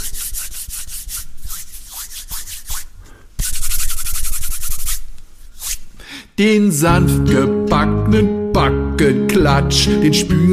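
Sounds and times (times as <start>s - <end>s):
hands rubbing together: 0.0s - 6.0s
speech: 6.4s - 10.5s.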